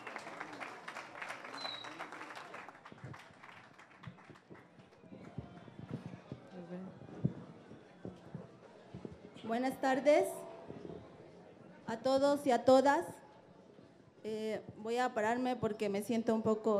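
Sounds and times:
audience applause: 0.0s - 8.6s
murmur of voices: 4.8s - 14.8s
speech: 9.5s - 10.4s, 12.0s - 13.2s, 14.2s - 16.7s.

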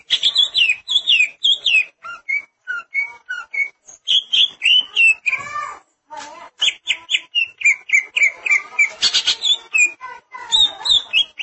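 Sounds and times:
greater green leafbird song: 0.0s - 5.8s, 6.6s - 11.4s.

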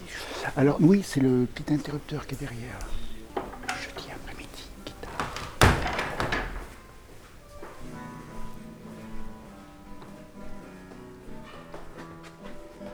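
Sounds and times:
quiet murmuring voices: 0.0s - 10.2s
speech: 0.5s - 3.0s
door scraping and rattling: 1.9s - 7.4s
door banging shut: 2.8s - 7.4s.

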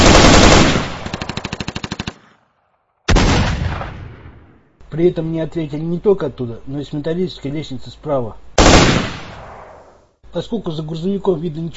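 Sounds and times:
machine gun burst: 0.0s - 2.2s, 8.6s - 9.5s
speech: 4.9s - 8.9s, 10.3s - 11.7s.

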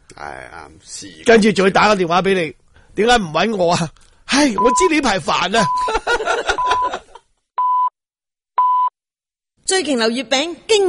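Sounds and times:
speech: 0.2s - 7.0s, 9.7s - 10.8s
radio time signal beeps: 4.6s - 4.9s, 7.6s - 7.9s, 8.6s - 8.9s
laughter: 5.6s - 7.3s.

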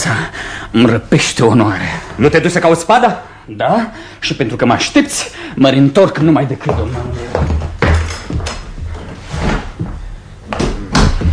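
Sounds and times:
speech: 0.1s - 7.7s
connecting door opening and closing: 7.6s - 9.7s.

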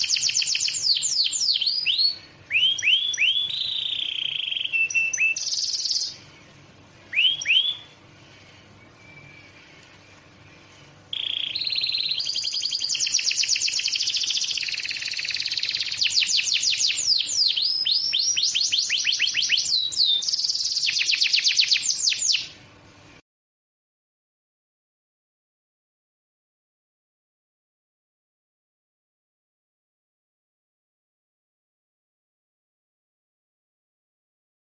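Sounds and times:
bird trilling whistled song: 0.0s - 22.6s.

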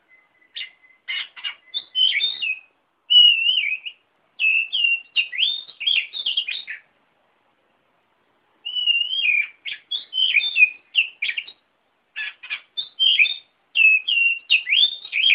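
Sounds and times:
Oriental magpie-robin song: 0.0s - 7.0s, 8.6s - 15.3s.

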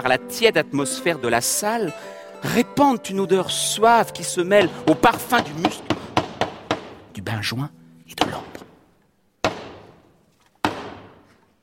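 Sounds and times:
speech: 0.0s - 5.9s, 7.2s - 8.5s
solemn knocks signalling the start of a theatre play: 4.6s - 7.1s, 8.2s - 8.8s, 9.4s - 11.4s.

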